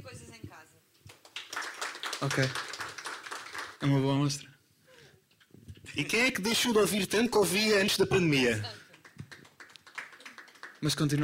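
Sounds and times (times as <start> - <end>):
few people clapping hands: 1.0 - 3.9, 8.6 - 11.2
speech: 2.2 - 2.7, 3.8 - 4.5, 6.0 - 8.8, 10.8 - 11.2.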